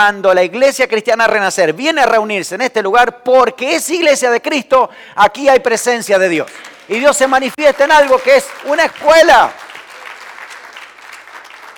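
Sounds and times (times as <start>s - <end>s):
speech: 0.0s - 9.6s
church congregation applauding in worship: 6.3s - 11.7s.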